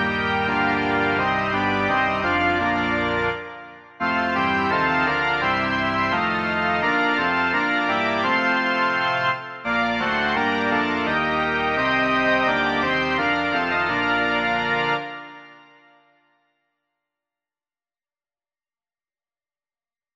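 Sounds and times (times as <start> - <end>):
organ: 0.0 - 16.0.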